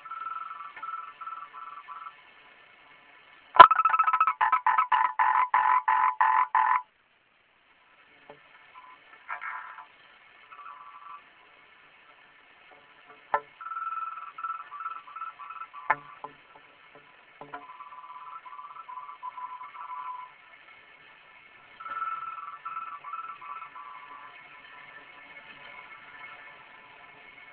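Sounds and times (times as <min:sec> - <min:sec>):
frog croaking: 0:00.0 - 0:02.2, 0:03.6 - 0:06.9, 0:08.8 - 0:09.9, 0:10.5 - 0:11.3, 0:13.3 - 0:16.4, 0:17.4 - 0:20.3, 0:21.8 - 0:24.4.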